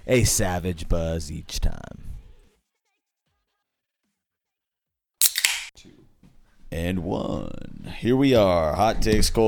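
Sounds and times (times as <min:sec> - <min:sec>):
speech: 0:00.1 - 0:02.0, 0:06.7 - 0:09.4
beer can being cracked open: 0:05.2 - 0:05.7.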